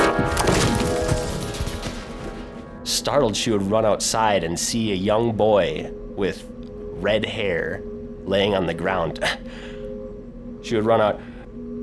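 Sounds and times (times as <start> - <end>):
something falling off a roof with woody crash: 0.2 - 2.6
speech: 3.1 - 9.7, 10.6 - 11.3.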